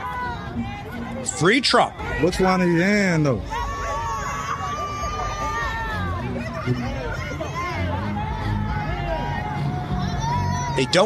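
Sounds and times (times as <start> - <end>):
crowd cheering in the street: 0.0 - 11.0
speech: 0.6 - 3.6, 6.6 - 6.9, 10.8 - 11.0.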